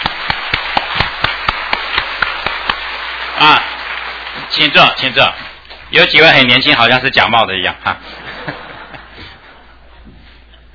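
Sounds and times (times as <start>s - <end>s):
crowd warm applause: 0.0s - 6.5s
speech: 3.4s - 3.7s, 4.4s - 8.6s
laughter: 7.8s - 10.7s.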